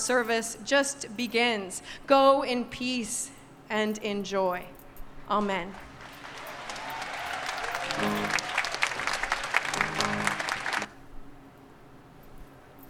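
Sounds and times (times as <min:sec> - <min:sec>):
speech: 0:00.0 - 0:05.9
audience applauding: 0:05.8 - 0:10.9.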